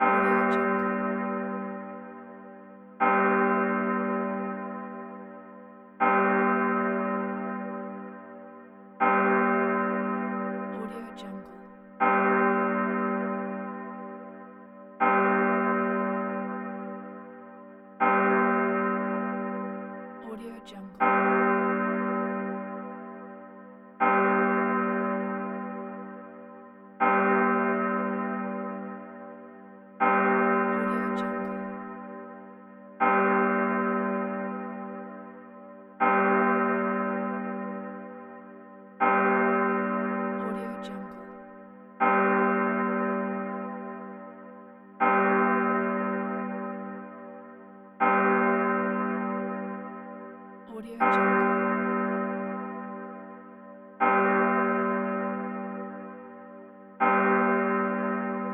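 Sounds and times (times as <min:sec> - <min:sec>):
old church bell ringing: 0:00.0 - 0:58.5.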